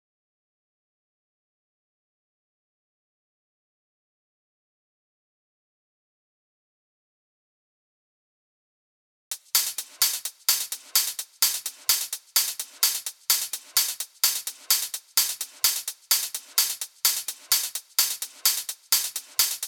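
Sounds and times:
hi-hat pattern at 128 BPM: 0:09.3 - 0:19.6.

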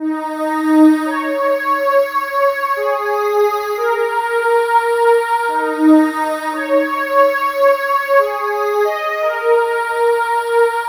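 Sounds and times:
synth lead: 0:00.0 - 0:10.8.

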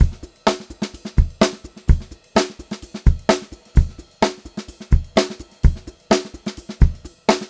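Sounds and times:
128 BPM funk groove drum loop: 0:00.0 - 0:07.4.

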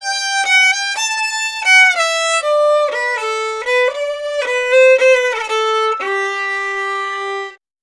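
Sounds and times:
Appalachian fiddle: 0:00.0 - 0:07.6.

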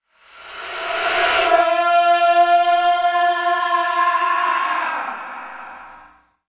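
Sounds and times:
vocal effects: 0:01.3 - 0:06.2.

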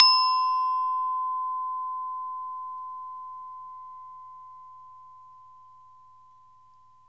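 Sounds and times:
metallophone pitched percussion: 0:00.0 - 0:02.9.

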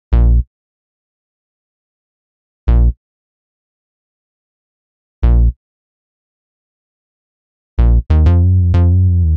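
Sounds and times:
bass combo playing: 0:00.1 - 0:00.4, 0:02.7 - 0:03.0, 0:05.2 - 0:05.5, 0:07.8 - 0:09.3.

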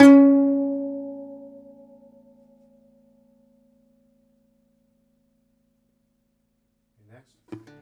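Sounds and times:
domra plucked strings: 0:00.0 - 0:02.8.

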